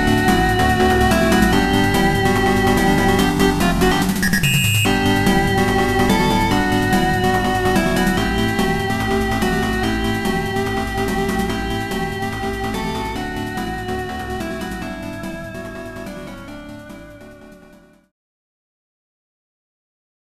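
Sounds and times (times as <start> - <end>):
samba rhythm: 0.0 - 15.6.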